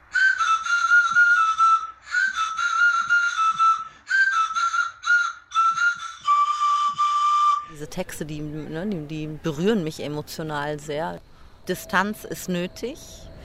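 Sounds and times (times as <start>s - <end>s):
homemade pan flute from disposable razor handles: 0.0s - 8.0s
speech: 7.8s - 13.3s.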